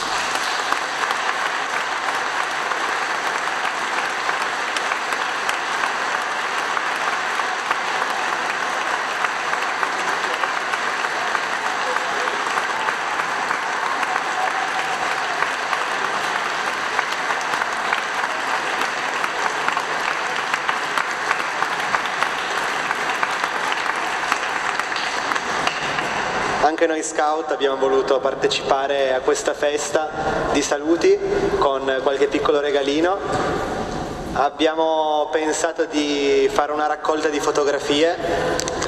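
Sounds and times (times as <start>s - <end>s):
warm applause: 0.0s - 27.5s, 35.4s - 38.8s
speech: 26.8s - 33.7s, 34.4s - 38.6s.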